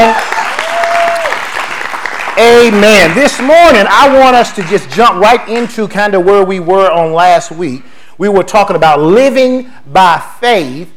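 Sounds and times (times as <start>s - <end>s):
people clapping hands: 0.0s - 5.9s
speech: 2.4s - 10.9s.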